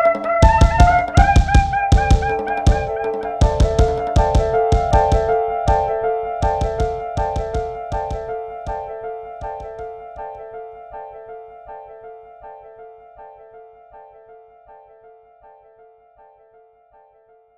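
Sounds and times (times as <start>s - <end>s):
80 BPM music construction kit: 0.0s - 10.4s.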